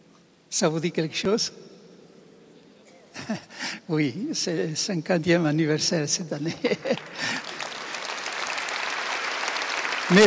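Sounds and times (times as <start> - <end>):
speech: 0.5 - 1.7, 3.3 - 7.4
audience applause: 6.9 - 10.2.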